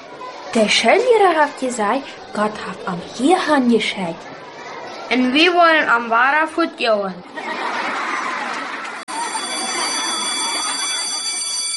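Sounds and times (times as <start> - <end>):
many children's voices chattering: 0.0 - 11.7
speech: 0.5 - 4.4, 5.1 - 7.6
laughter: 7.2 - 11.7
school bell ringing: 9.1 - 11.7.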